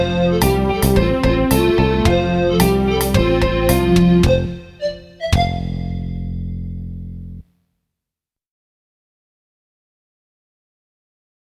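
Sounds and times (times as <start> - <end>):
karaoke backing track: 0.0 - 5.7.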